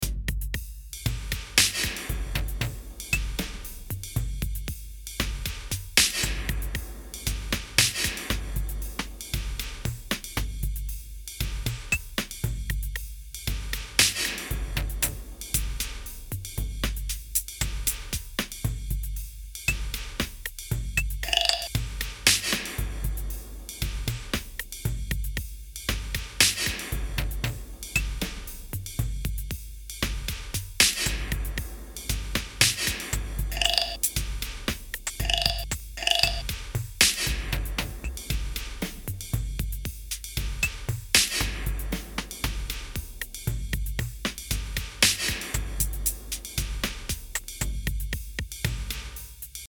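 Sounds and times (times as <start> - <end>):
drums: 0.0 - 49.7.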